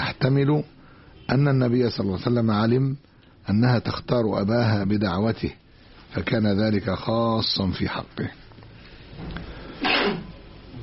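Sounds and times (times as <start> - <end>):
speech: 0.2 - 8.4, 9.2 - 10.3
person sneezing: 9.8 - 10.3.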